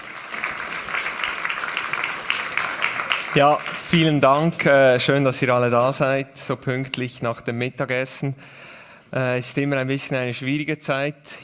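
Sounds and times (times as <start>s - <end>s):
audience applause: 0.0s - 4.2s
speech: 3.3s - 11.4s.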